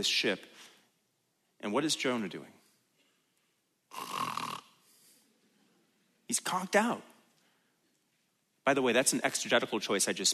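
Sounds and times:
speech: 0.0 - 0.5, 1.6 - 2.6, 6.3 - 7.1, 8.7 - 10.3
snoring: 3.9 - 4.8.

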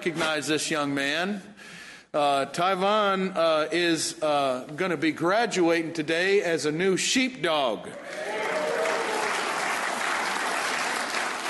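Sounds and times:
speech: 0.0 - 8.4
audience applause: 8.0 - 11.4.

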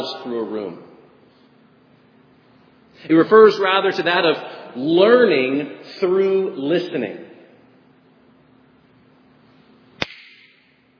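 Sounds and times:
low hum: 0.0 - 10.9
speech: 0.1 - 1.0, 3.0 - 7.2
finger snap: 10.0 - 10.8.

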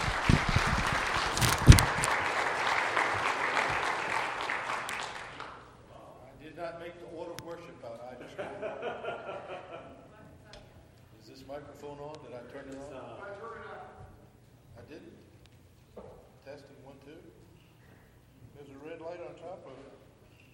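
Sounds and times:
audience applause welcoming a pastor at a morning gathering: 0.0 - 5.6
laughter: 8.2 - 10.5.

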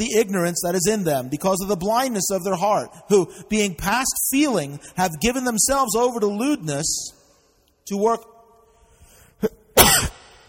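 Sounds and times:
speech: 0.0 - 7.2, 7.9 - 8.3
sneeze into the microphone: 9.8 - 10.4.

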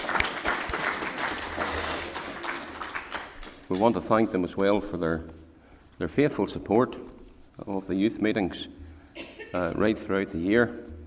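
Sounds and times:
audience applauding: 0.0 - 4.0
speech: 3.7 - 5.4, 6.0 - 8.8, 9.5 - 10.9.

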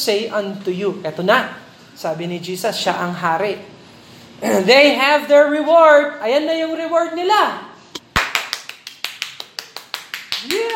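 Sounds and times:
speech: 0.0 - 3.8, 4.4 - 7.7, 10.4 - 10.7
people clapping: 8.1 - 10.7.

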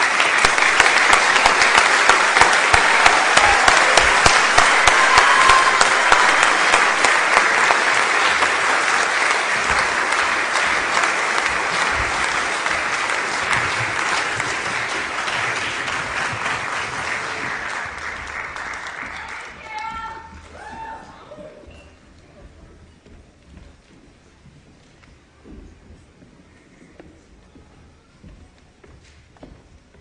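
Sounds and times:
large crowd applauding graduates: 0.0 - 20.7.

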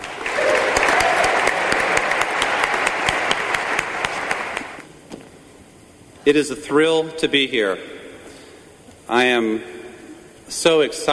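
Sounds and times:
audience applause: 0.0 - 4.8
speech: 6.3 - 8.0, 9.1 - 9.8, 10.5 - 11.1.

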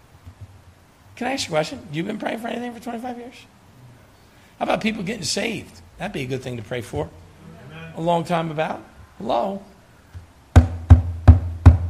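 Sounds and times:
speech: 1.2 - 3.6, 4.6 - 7.2, 8.0 - 9.7
knocking on a door: 10.6 - 11.8.

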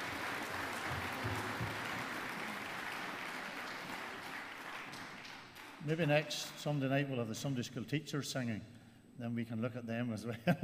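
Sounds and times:
audience applause: 0.0 - 5.9
speech: 5.8 - 10.6.

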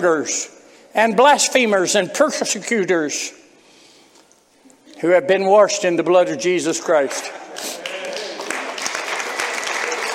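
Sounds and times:
speech: 0.0 - 3.4, 5.0 - 7.8
audience clapping: 7.1 - 10.1.

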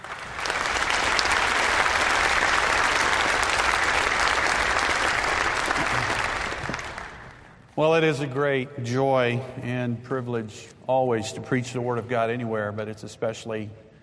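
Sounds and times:
audience applause welcoming a guest preacher: 0.0 - 7.6
speech: 7.8 - 13.8.

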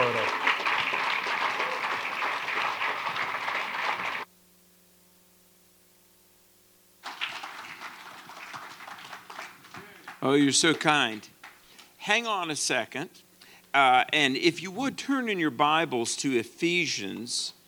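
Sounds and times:
audience clapping for a keynote speaker at a church gathering in Orlando, Florida: 0.0 - 4.3, 7.0 - 11.9
speech: 10.2 - 11.3, 12.0 - 17.6.

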